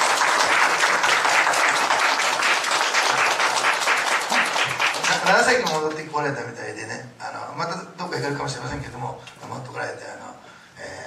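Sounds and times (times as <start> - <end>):
welcoming applause from a crowd: 0.0 - 6.0
speech: 5.3 - 10.1.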